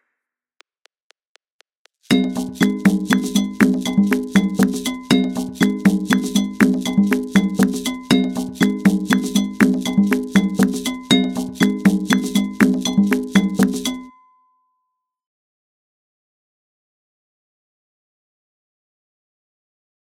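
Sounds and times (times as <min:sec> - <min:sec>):
agbaja African percussion rhythm at 120 bpm: 0:02.1 - 0:14.1.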